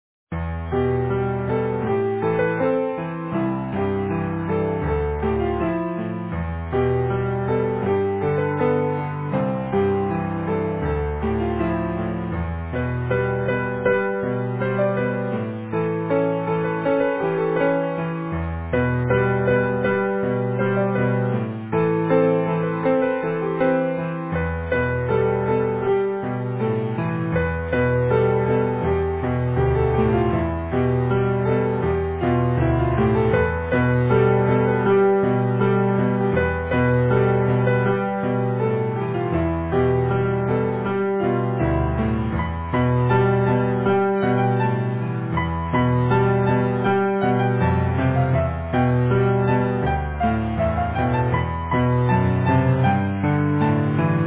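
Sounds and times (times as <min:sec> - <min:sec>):
easy piano: 0:00.3 - 0:54.2.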